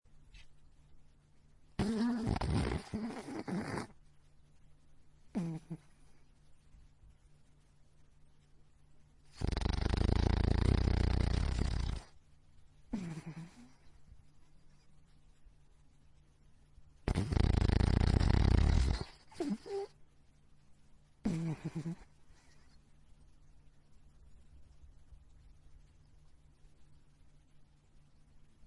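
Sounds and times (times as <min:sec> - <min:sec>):
small dog snoring: 0:01.8 - 0:04.0, 0:05.3 - 0:06.1, 0:09.3 - 0:12.2, 0:12.9 - 0:13.9, 0:17.0 - 0:20.0, 0:21.2 - 0:22.6.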